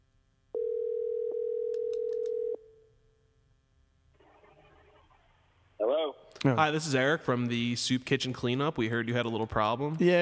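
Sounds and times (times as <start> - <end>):
phone outgoing call ringing tone: 0.6 - 2.9
speech: 5.9 - 10.1.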